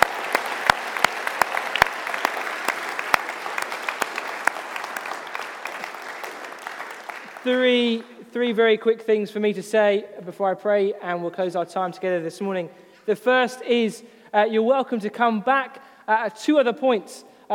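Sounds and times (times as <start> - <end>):
audience applause: 0.0 - 8.1
speech: 7.4 - 17.5.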